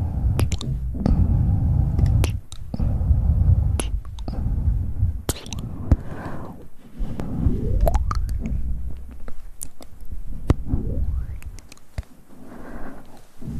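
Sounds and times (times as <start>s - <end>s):
hand movements low rustling murmur: 0.0s - 13.5s
rising swooping sounds: 0.0s - 13.5s
wet mouth clicks and pops: 0.4s - 1.2s, 2.0s - 2.8s, 5.3s - 5.7s, 7.8s - 10.6s, 11.4s - 12.1s.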